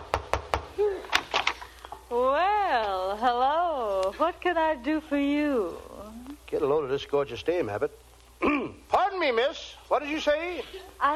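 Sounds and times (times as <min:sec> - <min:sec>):
knocking on a front door: 0:00.0 - 0:00.7
speech: 0:02.1 - 0:05.9, 0:06.5 - 0:08.6, 0:09.2 - 0:11.1.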